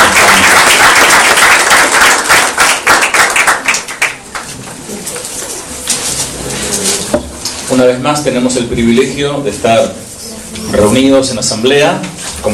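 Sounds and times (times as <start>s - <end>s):
audience applause: 0.0s - 4.8s
speech: 7.8s - 10.1s, 10.7s - 12.5s.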